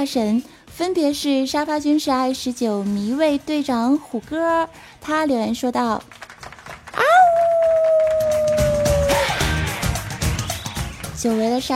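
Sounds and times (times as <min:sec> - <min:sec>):
speech: 0:00.0 - 0:06.2, 0:11.2 - 0:11.7
wolf howl: 0:07.0 - 0:09.5.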